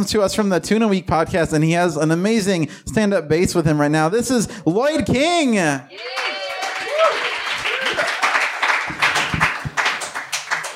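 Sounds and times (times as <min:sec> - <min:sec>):
speech: 0:00.0 - 0:06.2
audience applause: 0:05.9 - 0:10.7.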